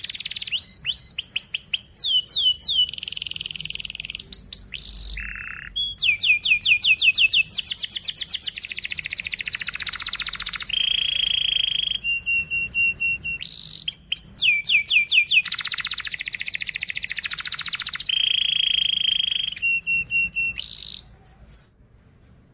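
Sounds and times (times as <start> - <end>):
domestic canary in full rapid dense chirping song: 0.0 - 21.6.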